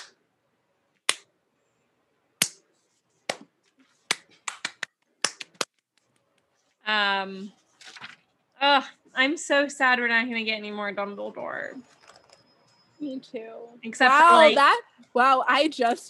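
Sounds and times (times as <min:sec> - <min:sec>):
quiet slow hand claps: 0:04.1 - 0:05.8
speech: 0:06.9 - 0:07.6, 0:08.6 - 0:12.0, 0:13.0 - 0:16.0.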